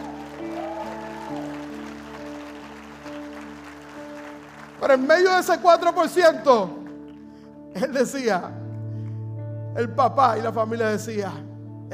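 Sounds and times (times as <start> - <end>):
audience applause: 0.0 - 7.3
speech: 4.9 - 6.8, 7.8 - 8.6, 9.8 - 11.9.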